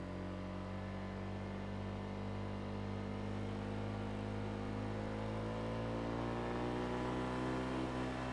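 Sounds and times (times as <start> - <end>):
ATV engine driving onto onboard ramps and stopping: 0.2 - 8.3.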